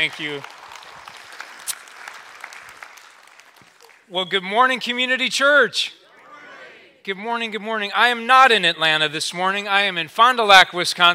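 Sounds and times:
speech: 0.0s - 0.6s, 4.1s - 6.0s, 7.0s - 11.1s
audience applause welcoming a speaker: 0.0s - 4.1s.

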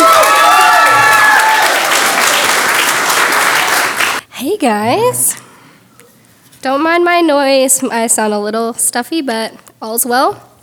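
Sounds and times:
faint audience cheer: 0.0s - 2.5s
audience applause at a comedy show: 0.0s - 4.2s
speech: 6.7s - 10.5s.

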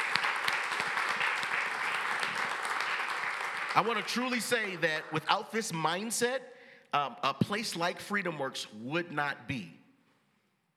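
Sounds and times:
round of applause: 0.0s - 5.0s
speech: 3.8s - 9.8s.

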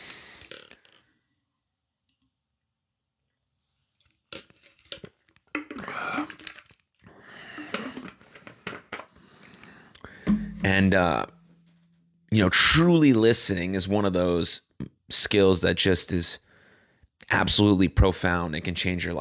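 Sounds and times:
person drinking water in gulps and swallows: 4.0s - 8.2s
satisfied exhale: 7.1s - 8.5s, 9.2s - 10.5s
speech: 10.7s - 11.4s, 12.3s - 16.4s, 17.3s - 19.1s.

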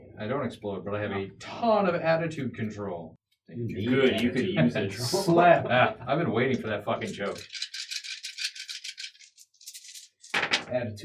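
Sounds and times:
speech: 0.2s - 7.6s, 10.7s - 11.0s
handful of dice rolled: 7.3s - 10.7s.

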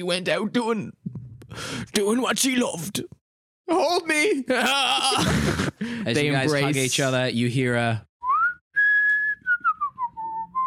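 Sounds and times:
speech: 0.0s - 8.1s
whistling: 8.2s - 10.6s.

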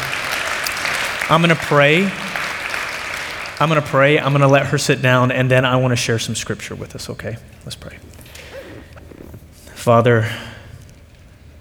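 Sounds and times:
audience applause: 0.0s - 7.4s
speech: 1.3s - 2.2s, 3.6s - 8.4s, 9.8s - 10.5s.

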